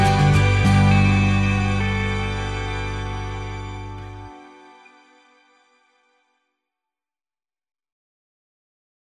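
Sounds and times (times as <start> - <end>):
folk music: 0.0 - 6.2.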